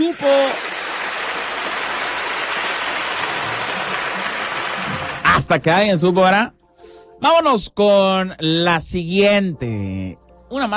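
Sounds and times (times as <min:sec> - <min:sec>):
audience applause: 0:00.0 - 0:05.4
speech: 0:00.1 - 0:00.7, 0:05.4 - 0:06.6, 0:07.2 - 0:10.7.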